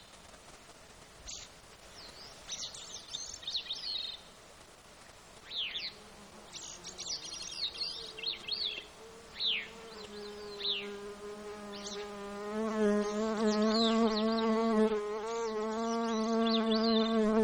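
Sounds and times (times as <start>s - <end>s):
insect buzzing in Alaska: 5.5s - 17.4s.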